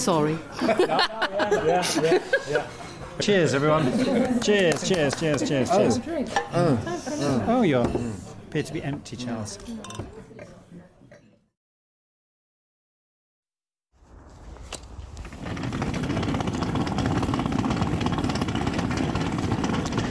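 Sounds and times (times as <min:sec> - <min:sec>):
speech: 0:00.0 - 0:10.2
laughter: 0:00.5 - 0:05.6, 0:06.5 - 0:07.6
suitcase wheels rolling over pavement: 0:14.8 - 0:20.0.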